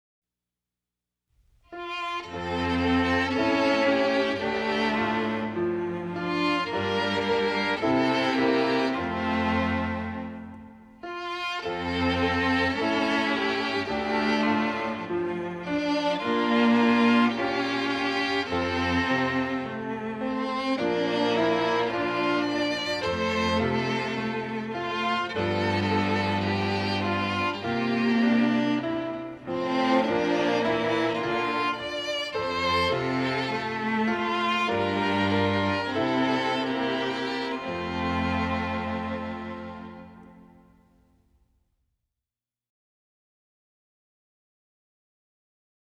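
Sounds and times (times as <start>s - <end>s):
music: 1.4s - 41.8s.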